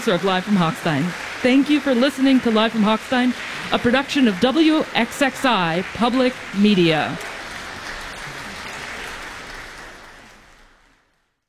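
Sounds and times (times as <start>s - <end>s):
speech: 0.0s - 7.3s
audience applause: 0.0s - 11.2s.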